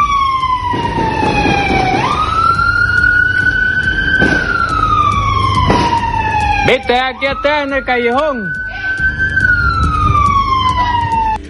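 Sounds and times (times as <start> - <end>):
police patrol car siren wailing: 0.0 - 11.4
rumbling street background: 0.0 - 11.4
sharp bangs: 0.6 - 2.6, 4.0 - 6.6
speech: 6.7 - 8.6.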